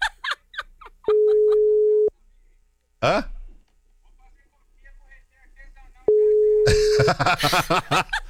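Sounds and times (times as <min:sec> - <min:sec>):
phone ringback tone: 0:01.1 - 0:02.1, 0:06.1 - 0:07.2
speech: 0:03.0 - 0:03.3, 0:07.2 - 0:08.2
laughter: 0:06.6 - 0:08.2.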